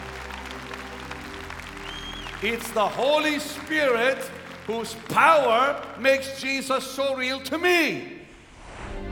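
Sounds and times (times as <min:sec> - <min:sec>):
audience applause: 0:00.0 - 0:07.0
speech: 0:02.4 - 0:08.2.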